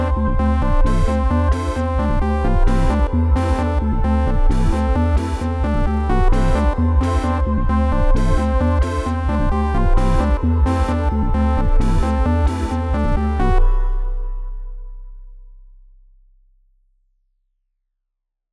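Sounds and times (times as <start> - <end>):
emotional synth rap beat: 0.0 - 14.0.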